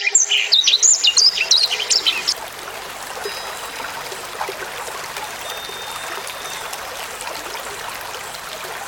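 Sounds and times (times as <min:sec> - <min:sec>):
black-throated canary warbling song: 0:00.2 - 0:08.8.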